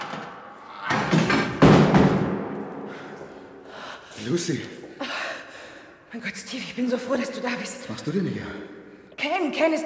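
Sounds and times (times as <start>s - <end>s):
thumping and rattling bangs on a stuck door: 0.9s - 2.4s
speech: 4.3s - 4.8s, 6.1s - 8.8s, 9.4s - 9.8s.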